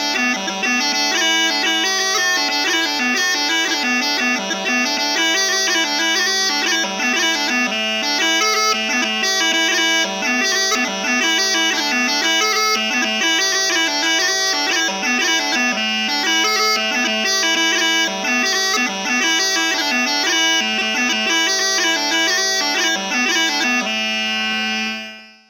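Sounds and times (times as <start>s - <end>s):
jig on bagpipes: 0.0s - 25.4s.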